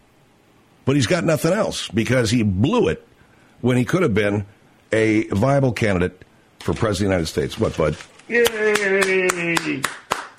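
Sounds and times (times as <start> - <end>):
speech: 0.9 - 10.0
person cheering: 8.3 - 10.2
evenly spaced hand claps as an applause track: 8.4 - 10.3.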